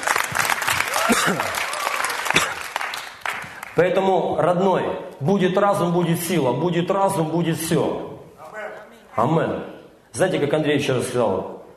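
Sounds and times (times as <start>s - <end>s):
audience applause: 0.0s - 3.8s
speech: 1.1s - 1.7s, 3.8s - 8.1s, 9.2s - 11.5s.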